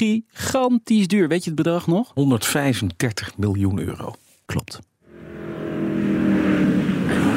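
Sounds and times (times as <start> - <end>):
speech: 0.0 - 4.9
Mercedes-Benz 300 SLR engine revving: 5.0 - 7.3.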